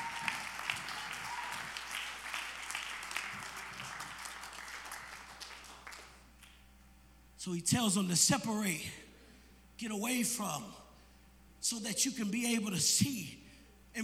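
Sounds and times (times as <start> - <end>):
crowd clapping hands: 0.0 - 6.6
speech: 7.4 - 9.0, 9.8 - 10.8, 11.6 - 14.0.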